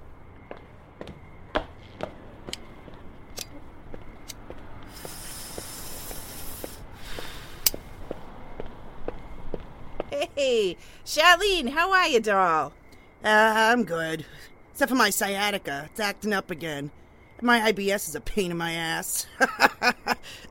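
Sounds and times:
footsteps of someone walking away: 0.3 - 10.2
hissing noise: 4.8 - 8.1
speech: 10.4 - 20.5.

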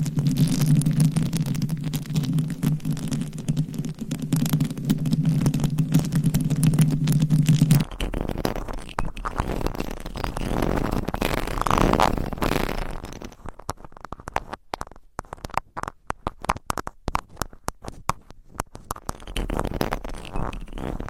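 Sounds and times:
microphone scratching on homemade mic covers: 0.0 - 21.0.

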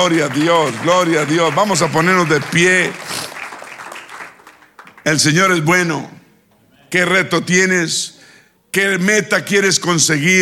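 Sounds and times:
speech: 0.0 - 3.3, 5.0 - 6.2, 6.9 - 8.1, 8.7 - 10.4
crowd applause: 0.0 - 5.1.

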